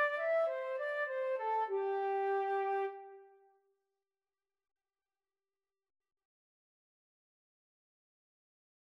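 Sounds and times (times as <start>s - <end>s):
flute duet: 0.0s - 3.3s.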